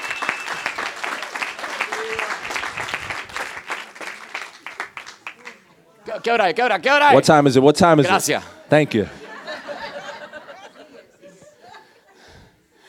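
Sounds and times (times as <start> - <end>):
church congregation applauding in praise: 0.0 - 5.7
speech: 6.1 - 9.2
laughter: 8.0 - 12.5.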